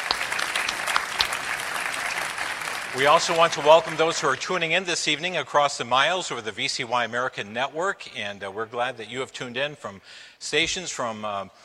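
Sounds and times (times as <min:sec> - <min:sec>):
audience applause at a VCY rally greeting first-time attendees: 0:00.0 - 0:04.6
speech: 0:02.9 - 0:11.6.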